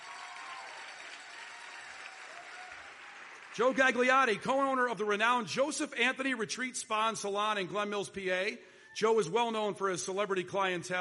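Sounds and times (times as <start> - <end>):
audience applause: 0.0 - 4.4
speech: 3.6 - 10.9.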